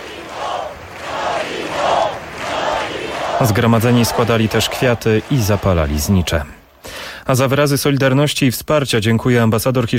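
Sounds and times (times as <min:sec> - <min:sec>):
crowd chanting in city square: 0:00.0 - 0:06.8
speech: 0:03.4 - 0:06.6, 0:07.3 - 0:09.9.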